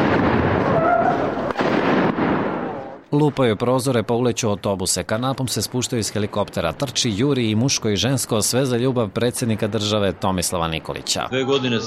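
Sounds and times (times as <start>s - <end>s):
loud dense gunfire: 0.0s - 3.0s
speech: 3.2s - 11.8s.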